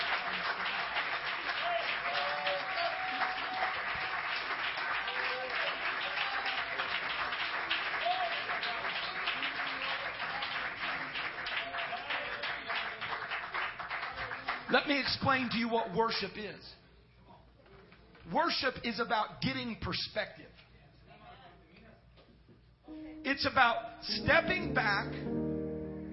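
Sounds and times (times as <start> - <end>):
audience clapping hands: 0.0 - 15.4
speech: 14.7 - 16.8, 18.3 - 20.6, 23.4 - 25.4.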